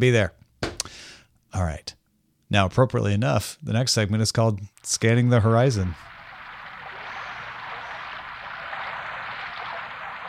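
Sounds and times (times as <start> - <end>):
speech: 0.0 - 0.4, 1.5 - 6.1
rain: 5.8 - 10.2.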